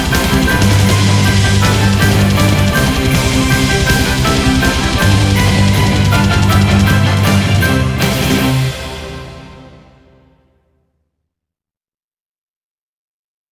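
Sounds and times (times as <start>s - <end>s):
heavy metal song: 0.0s - 10.3s.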